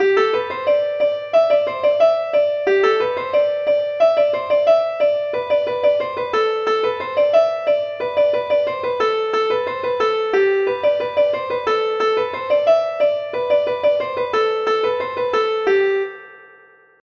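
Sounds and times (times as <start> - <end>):
music suite: 0.0 - 16.6.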